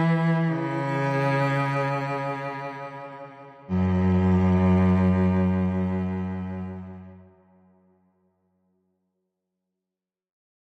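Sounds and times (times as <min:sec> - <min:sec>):
lead cellos playing: 0:00.0 - 0:07.3.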